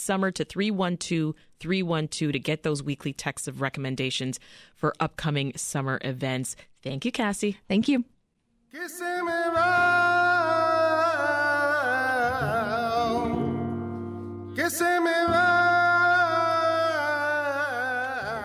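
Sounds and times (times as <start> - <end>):
speech: 0.0 - 8.1, 8.7 - 10.2
flamenco music performed at the American Spanish Dance and Music Festival: 9.6 - 18.4.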